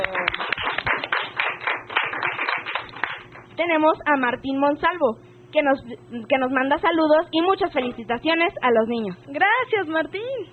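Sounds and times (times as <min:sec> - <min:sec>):
audience applause: 0:00.0 - 0:03.3
speech: 0:03.6 - 0:10.5.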